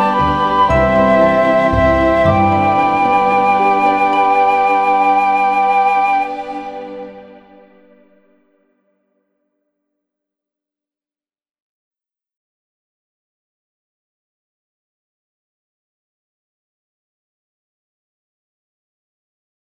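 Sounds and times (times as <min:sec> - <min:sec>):
exam music: 0:00.0 - 0:08.2.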